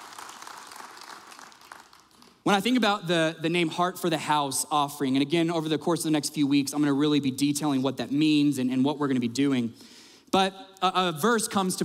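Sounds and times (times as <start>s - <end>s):
round of applause from a crowd: 0.0s - 2.4s
speech: 2.4s - 11.8s.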